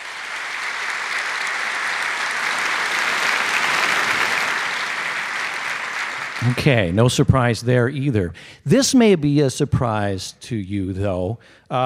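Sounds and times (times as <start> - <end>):
audience clapping: 0.0 - 7.6
speech: 6.4 - 11.8.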